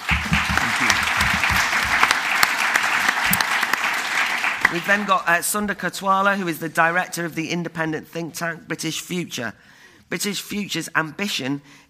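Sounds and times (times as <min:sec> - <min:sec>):
audience applause: 0:00.0 - 0:05.2
speech: 0:04.7 - 0:11.8.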